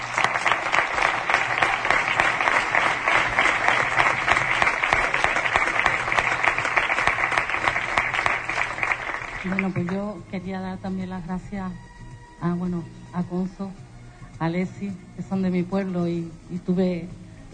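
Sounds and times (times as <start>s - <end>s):
audience applause: 0.0s - 10.0s
speech: 9.6s - 13.8s, 14.4s - 17.2s.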